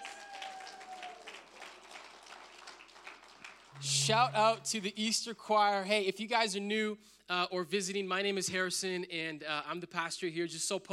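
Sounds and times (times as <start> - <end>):
audience applause: 0.0 - 3.8
speech: 3.8 - 10.9.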